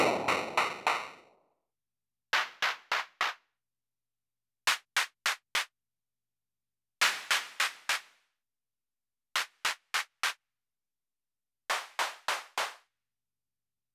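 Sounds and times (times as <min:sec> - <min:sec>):
clap: 0:00.0 - 0:01.2, 0:02.4 - 0:03.5, 0:04.7 - 0:05.7, 0:07.0 - 0:08.3, 0:09.4 - 0:10.4, 0:11.7 - 0:12.9.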